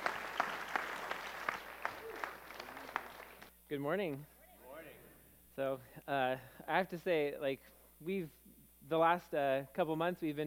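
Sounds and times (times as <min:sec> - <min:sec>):
audience applause: 0:00.0 - 0:03.5
speech: 0:03.7 - 0:04.4, 0:05.6 - 0:10.4.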